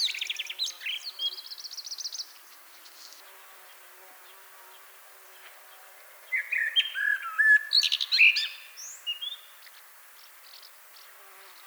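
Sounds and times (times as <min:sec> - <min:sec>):
common blackbird song: 0:00.0 - 0:04.4, 0:05.7 - 0:11.6.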